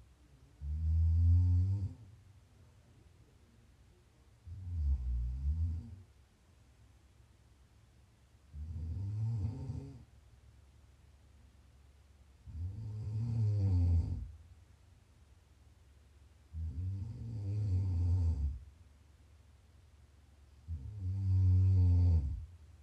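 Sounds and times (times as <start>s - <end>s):
faint low hum: 0.0s - 22.8s
snoring: 0.6s - 2.1s, 4.4s - 6.0s, 8.5s - 10.1s, 12.4s - 14.3s, 16.5s - 18.6s, 20.7s - 22.5s.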